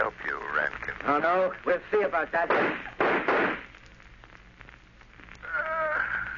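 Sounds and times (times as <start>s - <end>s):
hissy background: 0.0s - 6.3s
speech: 1.1s - 2.9s
gunshots in an old 1938 radio drama: 2.5s - 3.8s.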